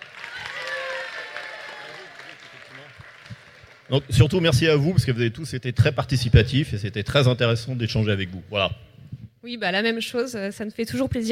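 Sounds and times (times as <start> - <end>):
audience applause: 0.0 - 5.0
speech: 3.9 - 11.3.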